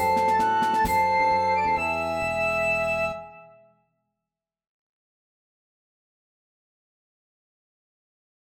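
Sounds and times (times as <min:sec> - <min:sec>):
bush dance music: 0:00.0 - 0:03.0.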